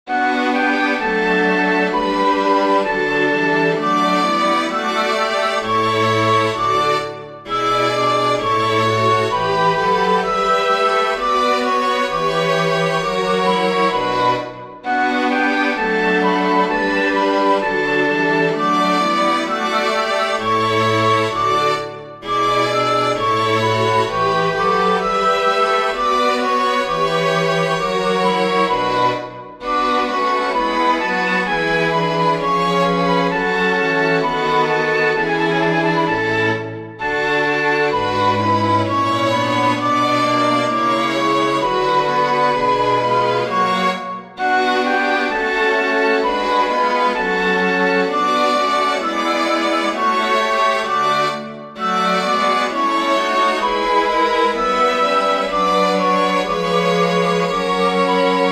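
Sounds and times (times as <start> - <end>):
flute playing a chorale: 0.1 - 58.4
strings playing a chorale: 0.1 - 58.4.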